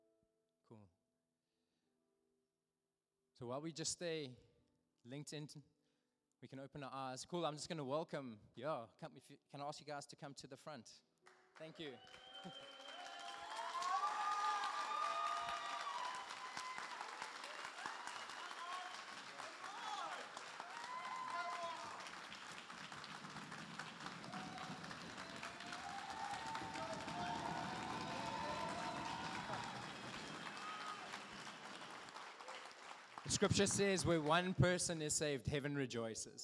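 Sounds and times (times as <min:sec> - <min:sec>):
speech: 0:00.7 - 0:01.0, 0:03.4 - 0:05.7, 0:06.4 - 0:12.8, 0:33.4 - 0:36.4
audience clapping: 0:11.2 - 0:35.3
people cheering and shouting: 0:11.8 - 0:34.4.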